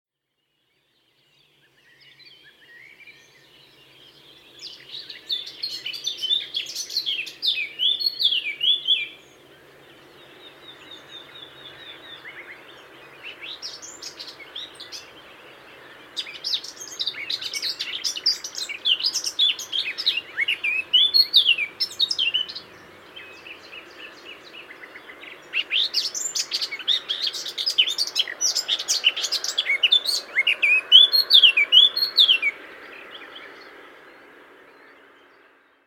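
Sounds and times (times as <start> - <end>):
Eurasian blackcap singing: 4.6 - 9.2, 16.2 - 32.6.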